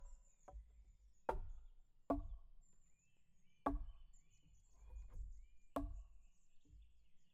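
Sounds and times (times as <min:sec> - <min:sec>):
mallet striking varied high-pitched wooden logs: 0:01.3 - 0:02.4, 0:03.6 - 0:03.9, 0:05.8 - 0:06.0.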